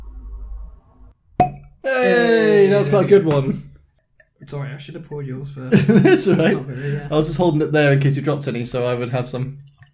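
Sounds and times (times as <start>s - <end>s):
cork popping from whisky bottle: 1.4s - 1.8s
speech: 2.0s - 3.7s, 4.4s - 9.7s
laughter: 5.7s - 7.5s.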